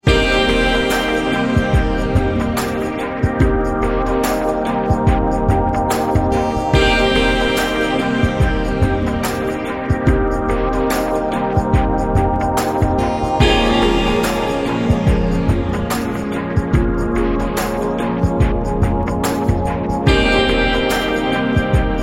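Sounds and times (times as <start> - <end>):
lounge music: 0.0 - 22.0.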